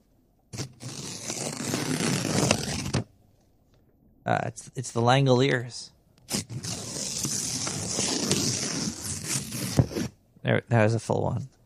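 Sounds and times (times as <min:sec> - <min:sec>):
paper envelope holding a check being ripped open: 0:00.6 - 0:03.1, 0:06.3 - 0:10.1
speech: 0:04.3 - 0:06.7, 0:10.5 - 0:11.5.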